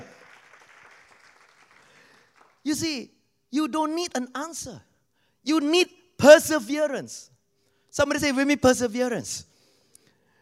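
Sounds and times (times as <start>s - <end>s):
audience applause: 0.0s - 2.6s
speech: 2.6s - 7.3s, 7.9s - 9.5s.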